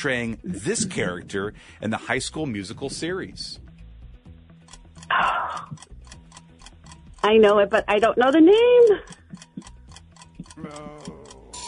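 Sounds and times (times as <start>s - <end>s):
speech: 0.0s - 3.7s, 5.1s - 5.9s, 7.2s - 9.4s, 10.6s - 11.0s
quiz timer ticking: 3.6s - 11.6s.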